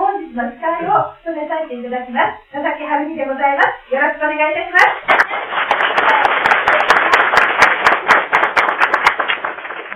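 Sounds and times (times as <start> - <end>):
speech: 0.4 - 5.2
audience applause: 5.1 - 9.9.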